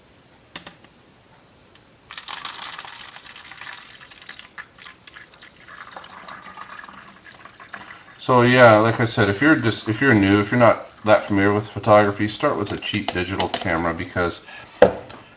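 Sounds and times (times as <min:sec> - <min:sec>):
stop bath poured from beaker into bottle: 0:02.1 - 0:13.0
speech: 0:08.2 - 0:15.3
brief tap: 0:14.8 - 0:15.2.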